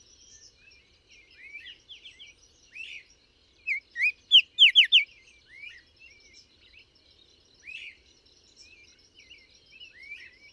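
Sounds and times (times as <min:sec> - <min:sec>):
bird song chirps and whistles: 0:03.7 - 0:05.1.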